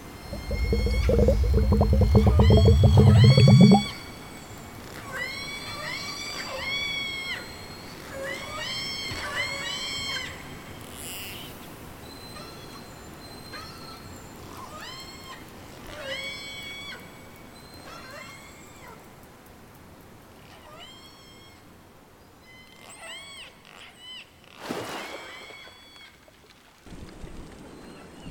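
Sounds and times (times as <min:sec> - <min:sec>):
soundscape: 0:00.3 - 0:04.0.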